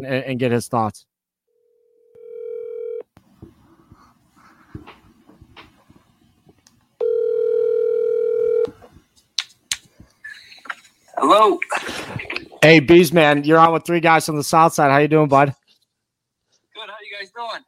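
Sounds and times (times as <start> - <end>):
speech: 0.0 - 1.1, 11.2 - 15.6, 16.8 - 17.6
telephone ringing: 1.8 - 3.1, 7.0 - 8.7.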